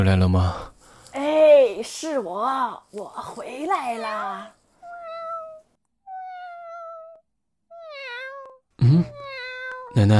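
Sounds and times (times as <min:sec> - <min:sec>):
speech: 0:00.0 - 0:00.7, 0:01.8 - 0:04.6, 0:10.0 - 0:10.1
cat meowing: 0:04.8 - 0:10.0.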